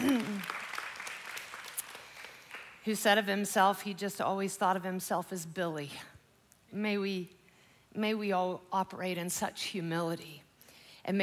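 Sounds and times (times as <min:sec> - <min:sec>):
quiet clapping from a church congregation: 0:00.0 - 0:02.8
speech: 0:02.8 - 0:06.1, 0:06.7 - 0:10.4, 0:11.0 - 0:11.2.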